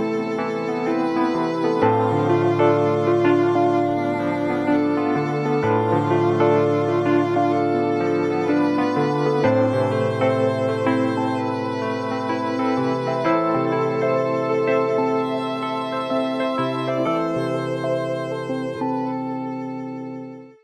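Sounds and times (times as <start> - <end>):
Wurlitzer electric piano pop music: 0.0 - 20.6.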